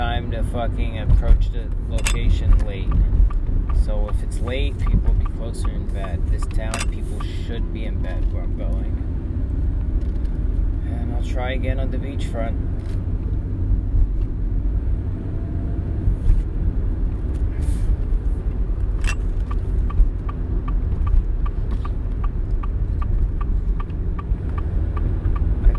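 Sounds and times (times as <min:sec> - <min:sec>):
car driving along a road, engine and tyre rumble: 0:00.0 - 0:25.7
speech: 0:00.4 - 0:09.0, 0:11.2 - 0:13.1
faint regular ticking: 0:02.0 - 0:07.5, 0:19.0 - 0:25.7.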